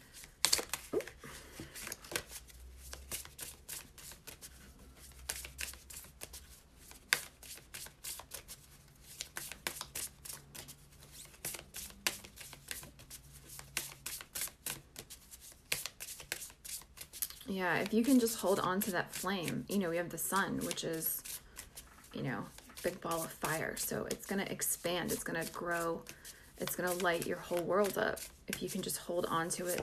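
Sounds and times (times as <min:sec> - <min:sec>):
Pure Magic Oracle card deck shuffling: 0:00.1 - 0:19.7, 0:20.6 - 0:23.5, 0:25.0 - 0:28.8
speech: 0:17.5 - 0:21.2, 0:22.3 - 0:29.8.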